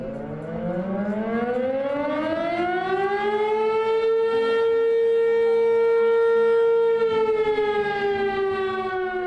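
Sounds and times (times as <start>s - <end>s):
civil defense siren blaring across the Carson Valley: 0.0s - 9.2s.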